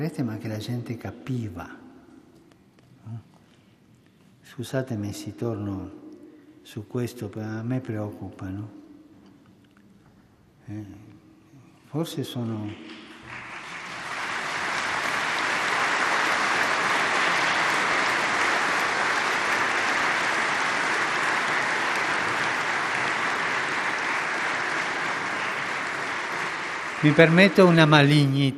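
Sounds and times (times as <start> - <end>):
speech: 0.0 - 1.8, 3.1 - 3.3, 4.5 - 6.0, 6.6 - 8.8, 10.7 - 11.1, 11.9 - 13.0, 27.0 - 28.5
audience applause: 12.8 - 28.5.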